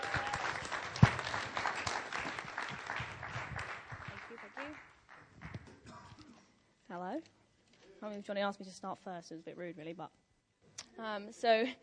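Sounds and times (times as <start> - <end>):
audience applause: 0.0 - 5.6
speech: 8.0 - 10.2, 11.0 - 11.8.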